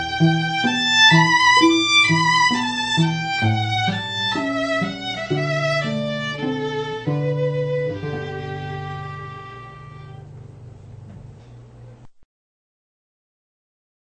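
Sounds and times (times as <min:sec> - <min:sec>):
musical trio playing: 0:00.0 - 0:10.6.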